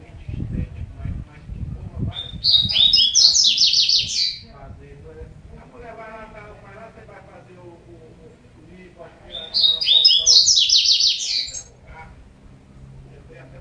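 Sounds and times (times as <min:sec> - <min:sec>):
double-collared seedeater singing fast bright chattering notes: 0:02.1 - 0:04.5, 0:09.3 - 0:11.8.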